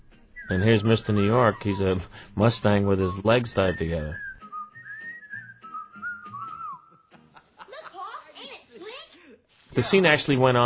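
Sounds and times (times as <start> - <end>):
two characters whistling a tune: 0.0 - 2.2, 3.0 - 7.2
speech: 0.5 - 4.2, 9.8 - 10.6.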